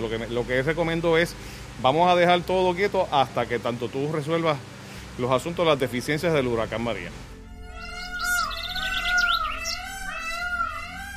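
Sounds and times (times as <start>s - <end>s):
speech: 0.0s - 7.3s
peacock calls: 7.6s - 11.1s
bird chirps: 7.7s - 11.1s.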